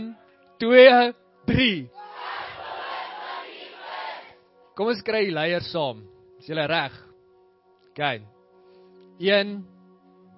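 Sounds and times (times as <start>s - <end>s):
speech: 0.6s - 2.0s, 4.8s - 7.1s, 8.0s - 8.3s, 9.2s - 9.7s
group of people screaming together: 2.0s - 4.3s.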